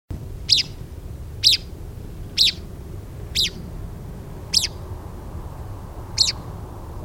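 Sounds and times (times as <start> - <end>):
steady low rumble: 0.1 - 7.0
Richard's pipit calls: 0.4 - 3.8, 4.4 - 4.9, 6.1 - 6.6.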